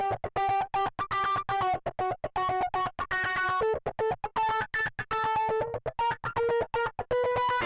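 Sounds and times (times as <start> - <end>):
guitar with flanger: 0.0 - 7.6.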